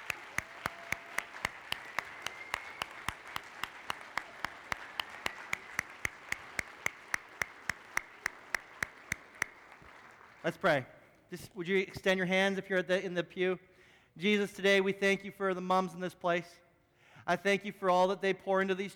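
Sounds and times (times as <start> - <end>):
audience applauding: 0.0 - 10.8
speech: 10.4 - 16.6, 17.3 - 18.9.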